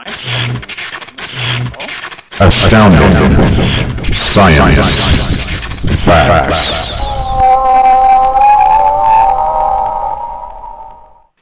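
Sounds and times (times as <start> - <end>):
speech: 2.4 - 5.2, 6.0 - 6.8
whale song: 6.5 - 11.3.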